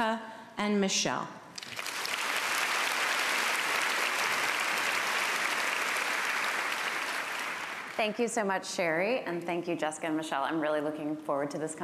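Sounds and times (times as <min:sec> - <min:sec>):
speech: 0:00.0 - 0:01.4, 0:08.0 - 0:11.8
audience applause welcoming three speakers at a talk: 0:01.6 - 0:08.1.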